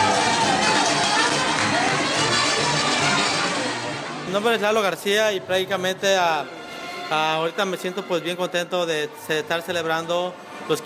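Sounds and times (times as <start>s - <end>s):
crowd clapping: 0.0s - 3.7s
faint cheering and voices: 0.0s - 3.7s
speech: 4.4s - 10.8s.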